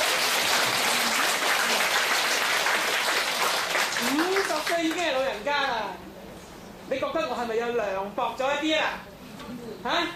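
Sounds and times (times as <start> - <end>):
audience applause: 0.0 - 5.0
speech: 4.7 - 6.1, 6.9 - 10.1.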